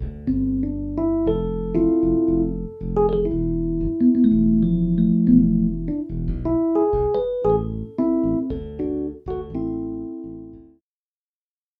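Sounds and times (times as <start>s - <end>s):
bossa nova music: 0.0s - 10.7s.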